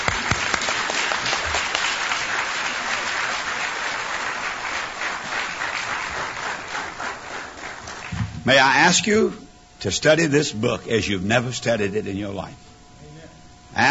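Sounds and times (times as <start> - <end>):
round of applause: 0.0 - 8.4
speech: 8.5 - 12.6.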